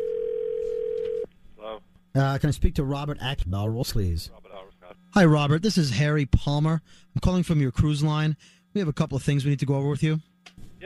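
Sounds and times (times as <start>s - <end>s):
telephone dial tone: 0.0s - 1.3s
speech: 2.2s - 4.4s, 5.1s - 10.8s.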